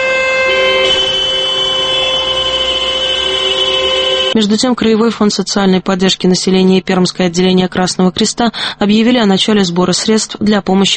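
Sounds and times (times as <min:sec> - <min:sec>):
many car horns honking together: 0:00.0 - 0:04.4
speech: 0:04.4 - 0:10.9.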